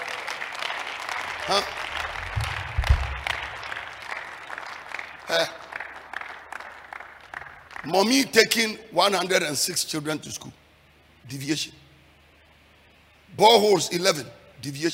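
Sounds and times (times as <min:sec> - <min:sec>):
audience applause: 0:00.0 - 0:07.9
speech: 0:01.5 - 0:01.8, 0:05.4 - 0:05.6, 0:07.9 - 0:10.6, 0:11.3 - 0:11.8, 0:13.4 - 0:14.9.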